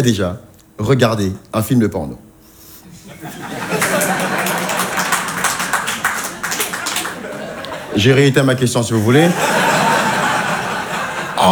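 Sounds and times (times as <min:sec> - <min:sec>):
speech: 0:00.0 - 0:02.2, 0:07.9 - 0:09.6
people chuckling: 0:02.8 - 0:11.4
crowd applauding: 0:03.1 - 0:11.4.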